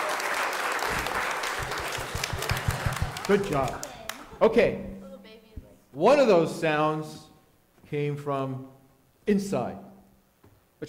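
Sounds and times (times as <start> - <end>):
everybody clapping: 0.0 - 4.4
speech: 3.3 - 3.8, 4.4 - 5.0, 6.0 - 7.2, 7.9 - 9.9.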